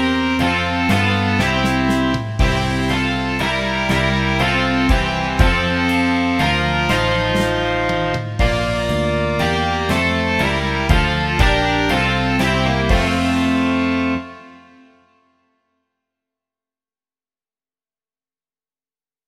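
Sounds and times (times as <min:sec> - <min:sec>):
rock music: 0:00.0 - 0:15.1.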